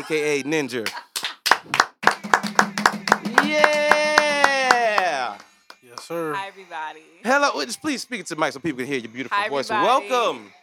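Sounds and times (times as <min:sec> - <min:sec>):
speech: 0:00.0 - 0:01.0, 0:01.6 - 0:01.8, 0:06.1 - 0:10.6
talk-show audience clapping: 0:00.8 - 0:06.1.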